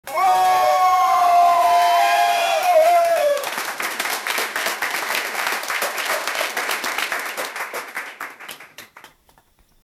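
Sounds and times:
person shouting a joyful yay: 0:00.1 - 0:03.4
clapping: 0:01.5 - 0:09.6.

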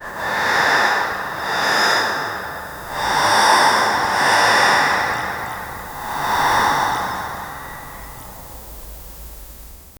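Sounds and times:
hushing sweeping breath in a hallway: 0:00.0 - 0:09.9.

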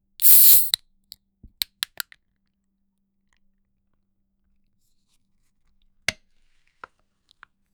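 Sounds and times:
soda can opening: 0:00.2 - 0:00.8.

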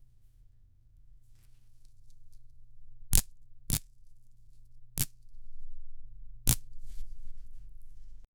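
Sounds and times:
flying stick: 0:06.5 - 0:08.3.

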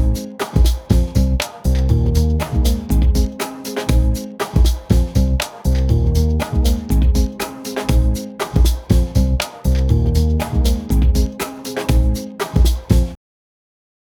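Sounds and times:
funky groove: 0:00.0 - 0:13.2.

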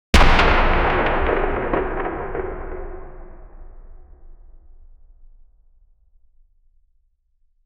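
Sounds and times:
deep heavy hammer hit: 0:00.2 - 0:04.4.

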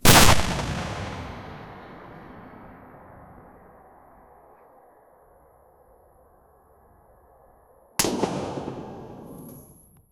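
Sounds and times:
cannon firing: 0:00.0 - 0:04.8, 0:08.0 - 0:09.9.

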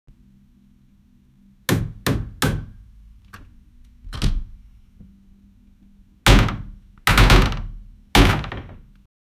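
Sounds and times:
door: 0:06.3 - 0:08.8.

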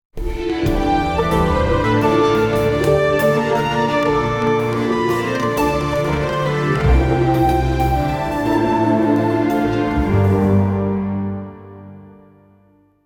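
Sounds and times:
classical music: 0:00.2 - 0:13.0.

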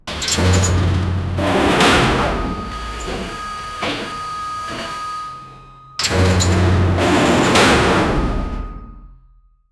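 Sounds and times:
massive industrial airlock: 0:00.0 - 0:07.7.

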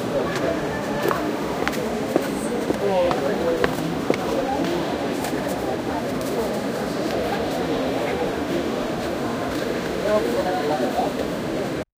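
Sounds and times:
ambient bustle: 0:00.0 - 0:11.6.

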